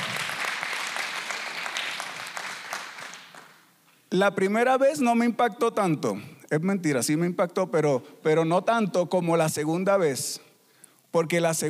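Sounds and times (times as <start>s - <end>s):
audience applause: 0.0s - 3.6s
speech: 4.1s - 10.5s, 11.1s - 11.6s.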